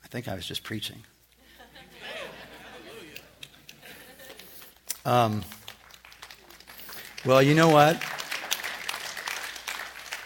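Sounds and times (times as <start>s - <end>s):
speech: 0.1s - 1.2s, 5.0s - 5.6s, 7.2s - 8.1s
laughter: 1.4s - 4.7s
crowd applauding: 2.1s - 10.2s.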